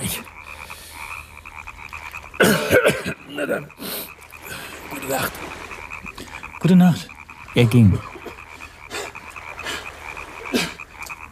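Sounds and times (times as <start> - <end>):
rasping cough: 2.4 - 3.6, 10.5 - 10.8
speech: 2.4 - 4.0, 5.1 - 5.6, 6.6 - 8.2.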